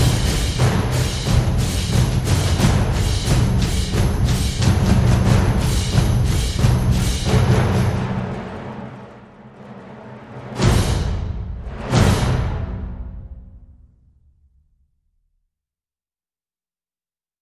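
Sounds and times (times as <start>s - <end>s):
percussion: 0.0s - 13.9s.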